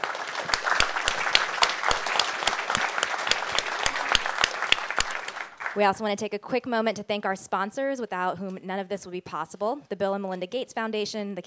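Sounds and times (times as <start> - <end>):
audience round of applause: 0.0 - 6.0
speech: 5.8 - 11.4.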